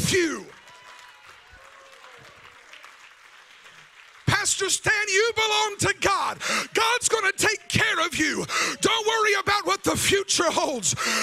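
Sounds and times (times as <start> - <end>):
audience clapping: 0.0 - 8.4
speech: 0.1 - 0.6, 4.4 - 11.2.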